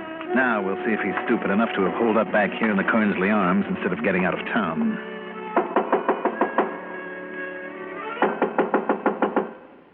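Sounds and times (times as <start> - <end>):
speech: 0.3 - 5.1
knuckles rapping on an apartment door: 5.5 - 6.9, 8.2 - 9.6.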